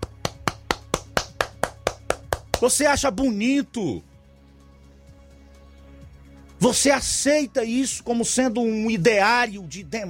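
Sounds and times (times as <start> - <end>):
person clapping hands: 0.0 - 2.8
speech: 2.6 - 4.1, 6.6 - 10.0.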